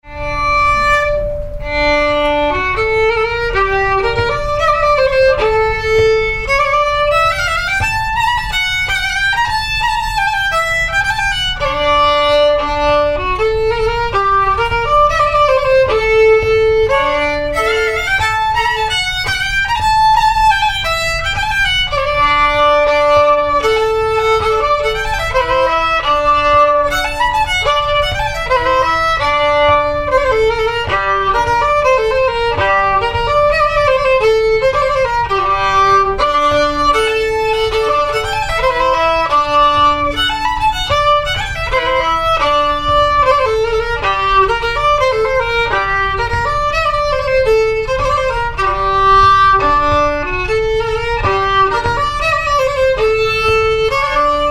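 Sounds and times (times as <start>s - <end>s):
polska folk tune: 0.1s - 54.4s.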